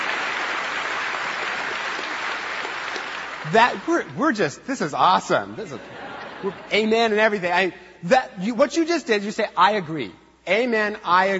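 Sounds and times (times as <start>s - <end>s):
audience clapping hands: 0.0s - 4.4s
speech: 3.5s - 11.3s
laughter: 5.3s - 7.4s.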